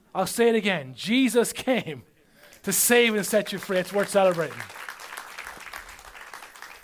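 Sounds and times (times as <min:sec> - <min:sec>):
speech: 0:00.2 - 0:04.9
audience clapping hands: 0:02.4 - 0:06.8.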